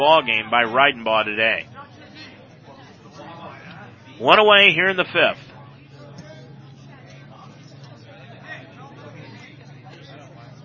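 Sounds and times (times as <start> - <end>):
speech: 0.0 - 1.7, 4.2 - 5.5
baseball crowd murmuring and chattering: 0.0 - 10.6.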